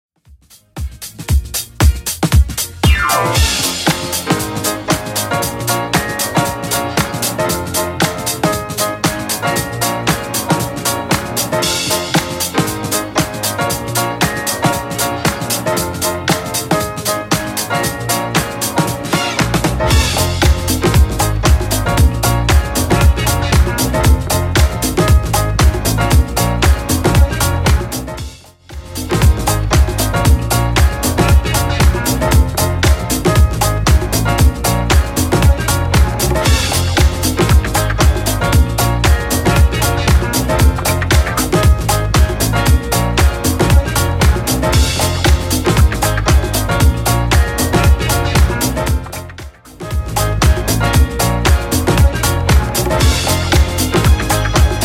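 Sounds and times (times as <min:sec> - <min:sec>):
1970s dance music: 0:00.3 - 0:54.8.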